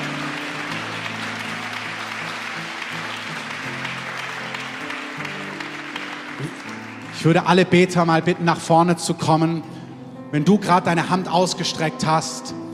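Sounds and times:
applause: 0:00.0 - 0:08.4
speech: 0:07.2 - 0:12.6.

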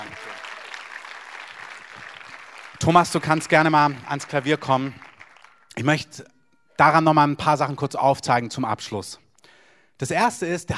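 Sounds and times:
audience applause: 0:00.0 - 0:05.8
speech: 0:02.8 - 0:05.0, 0:05.8 - 0:09.2, 0:10.0 - 0:10.7.

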